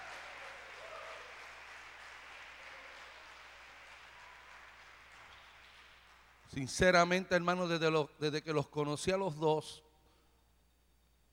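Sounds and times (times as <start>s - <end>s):
audience applause: 0.0s - 6.5s
speech: 6.5s - 9.8s.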